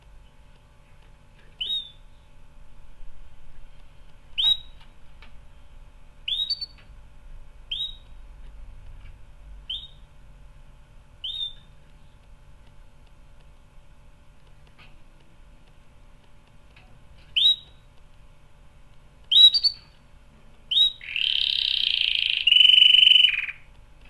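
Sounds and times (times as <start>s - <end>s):
canary singing: 1.6s - 2.3s, 4.4s - 4.8s, 6.2s - 6.8s, 7.7s - 8.2s, 9.7s - 10.1s, 11.2s - 12.1s, 17.2s - 17.9s, 19.3s - 20.0s, 20.7s - 23.7s.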